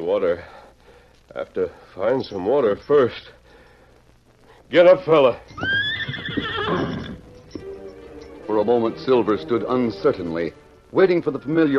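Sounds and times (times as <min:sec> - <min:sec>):
speech: 0:00.1 - 0:00.6, 0:01.3 - 0:03.4, 0:04.7 - 0:05.8, 0:08.5 - 0:11.7
horse whinnying: 0:05.5 - 0:07.8.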